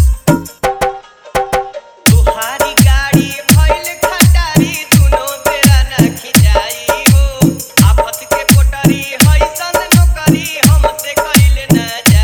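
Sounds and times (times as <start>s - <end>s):
Bhojpuri dholak bass mix: 0.0s - 12.2s.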